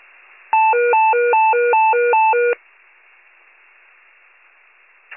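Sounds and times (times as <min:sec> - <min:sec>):
fire pager alert: 0:00.6 - 0:02.6.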